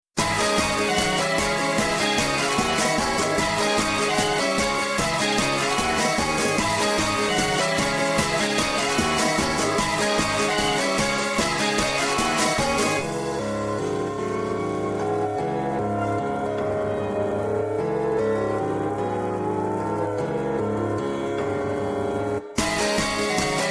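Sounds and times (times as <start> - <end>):
instrumental music snippets: 0.2 - 23.6.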